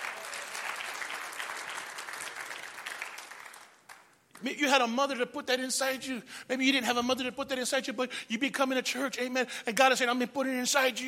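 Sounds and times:
audience applause: 0.0 - 4.1
speech: 4.4 - 11.0.

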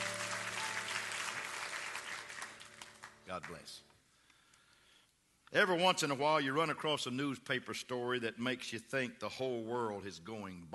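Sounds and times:
audience clapping hands: 0.0 - 3.9
speech: 3.3 - 3.9, 5.5 - 10.7.

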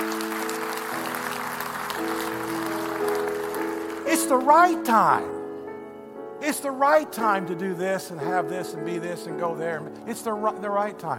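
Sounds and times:
audience clapping: 0.0 - 5.2
sustained organ chords: 0.0 - 11.1
speech: 4.2 - 5.4, 6.4 - 11.1.

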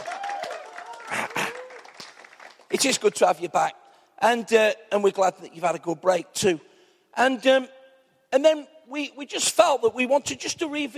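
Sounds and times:
audience applause: 0.0 - 2.8
speech: 2.7 - 10.9.

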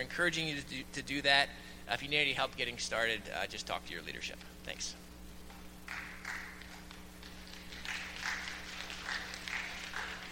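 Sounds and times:
speech: 0.0 - 5.1
audience clapping: 5.9 - 10.3.

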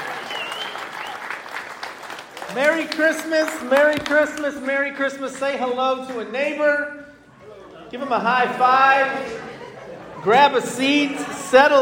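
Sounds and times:
audience round of applause: 0.0 - 4.7
speech: 2.6 - 7.0, 7.9 - 9.4, 10.2 - 11.8
laughter: 7.3 - 11.8.

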